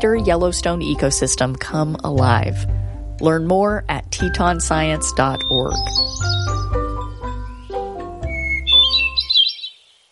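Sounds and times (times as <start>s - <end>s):
speech: 0.0s - 6.8s
hermit thrush song: 5.0s - 10.0s.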